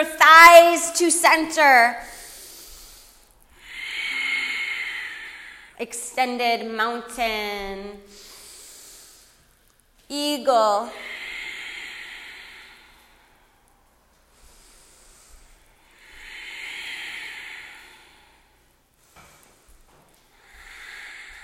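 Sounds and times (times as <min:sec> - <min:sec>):
speech: 0:00.0 - 0:02.1, 0:05.8 - 0:08.3, 0:10.1 - 0:11.1
ujjayi breathing: 0:02.0 - 0:05.8, 0:08.0 - 0:09.8, 0:10.9 - 0:21.4.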